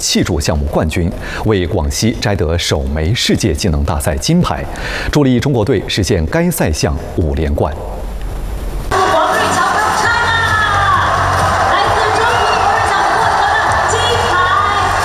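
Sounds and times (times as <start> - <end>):
speech: 0.1 - 8.0
high shouts and whoops: 8.9 - 15.0
large crowd roaring and cheering: 8.9 - 15.0.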